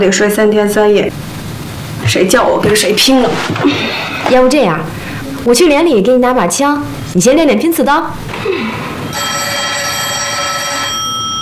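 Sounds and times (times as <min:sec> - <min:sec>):
speech: 0:00.0 - 0:01.3, 0:02.1 - 0:09.5
telephone ringing: 0:09.0 - 0:11.3.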